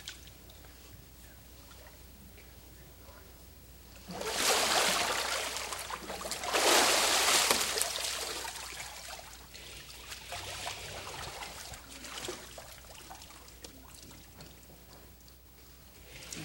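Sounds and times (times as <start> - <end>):
water splashing during an immersion baptism: 4.0 - 14.6.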